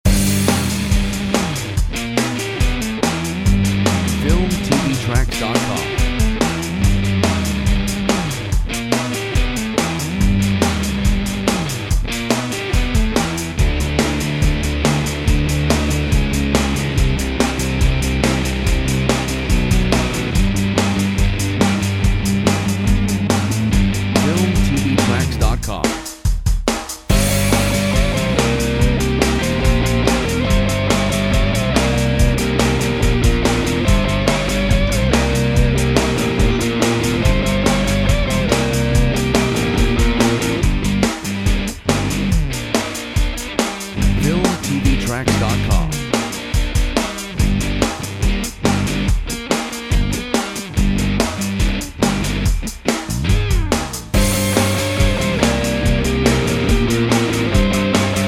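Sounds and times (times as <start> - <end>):
dusty blues music: 0.0 - 26.3, 26.9 - 58.2.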